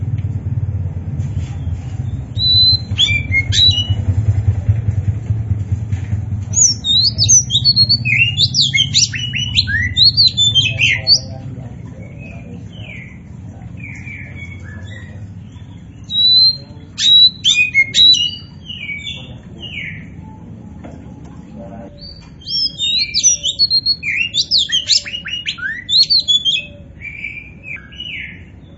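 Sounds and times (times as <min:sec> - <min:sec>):
steady low mechanical hum: 0:00.0 - 0:28.7
Oriental magpie-robin whistling song: 0:02.1 - 0:04.3, 0:06.5 - 0:11.3, 0:13.8 - 0:20.2, 0:21.9 - 0:28.5.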